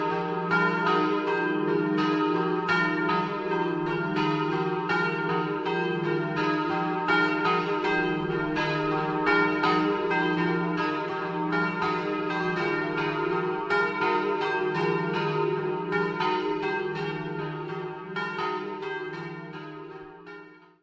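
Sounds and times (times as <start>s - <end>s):
church bells ringing in Treppo Carnico: 0.0s - 20.8s.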